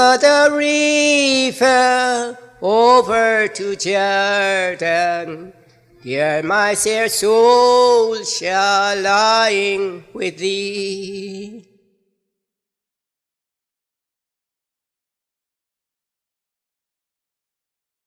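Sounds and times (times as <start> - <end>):
Afro-Caribbean funeral song: 0.0 - 11.7.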